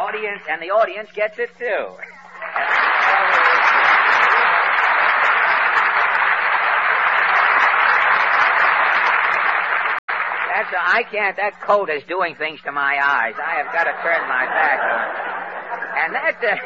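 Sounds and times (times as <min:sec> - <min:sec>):
speech: 0:00.1 - 0:03.3, 0:10.6 - 0:15.2, 0:16.0 - 0:16.6
laughter: 0:01.7 - 0:09.9, 0:13.0 - 0:16.6
one person clapping hands: 0:02.5 - 0:10.6.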